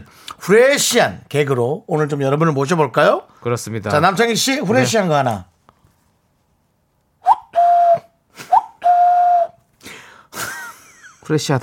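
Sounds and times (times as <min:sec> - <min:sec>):
speech: 0:00.0 - 0:05.5, 0:11.3 - 0:11.6
person whistling cuckoo call imitation: 0:07.2 - 0:09.6.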